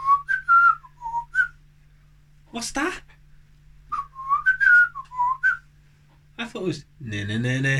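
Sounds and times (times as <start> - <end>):
person whistling a theme tune imitating a parrot: 0.0 - 1.6, 3.9 - 5.6
low steady hum: 0.0 - 7.7
speech: 2.5 - 3.1, 6.5 - 7.7.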